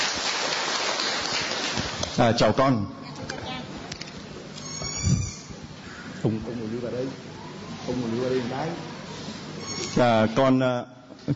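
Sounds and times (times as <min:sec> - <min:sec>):
audience applause: 0:00.0 - 0:02.2
speech: 0:02.2 - 0:03.0, 0:06.2 - 0:08.9, 0:10.0 - 0:11.3.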